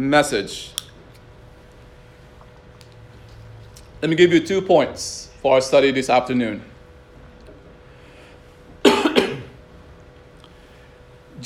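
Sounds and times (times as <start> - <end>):
speech: 0.0 - 0.8, 4.0 - 6.7
preacher coughing at the start of a sermon: 8.8 - 9.6.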